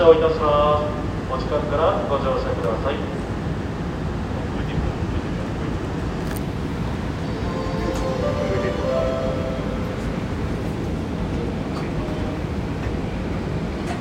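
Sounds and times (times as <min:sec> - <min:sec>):
train on the Seibu Ikebukuro Line east of Hanno Station: 0:00.0 - 0:13.9.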